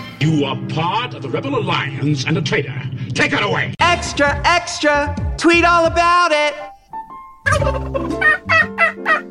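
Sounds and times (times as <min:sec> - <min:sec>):
speech: 0:00.4 - 0:06.7
turkeys gobbling: 0:07.5 - 0:09.2.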